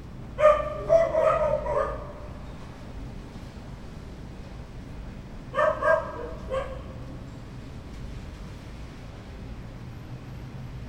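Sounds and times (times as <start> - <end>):
dog barking: 0.4 - 2.2, 5.5 - 7.0.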